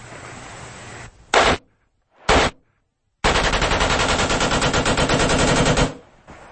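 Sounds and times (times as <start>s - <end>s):
bump stock rifle automatic fire from the shoulder: 1.4s - 1.6s, 2.3s - 2.6s, 3.2s - 6.0s.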